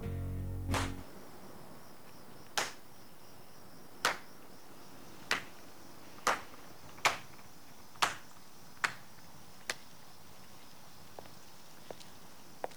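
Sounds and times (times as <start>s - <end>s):
short low noise: 0.0s - 1.2s
slow clapping by a lone onlooker: 0.6s - 1.1s, 2.5s - 2.9s, 4.0s - 4.4s, 5.3s - 5.6s, 6.2s - 7.4s, 8.0s - 9.0s.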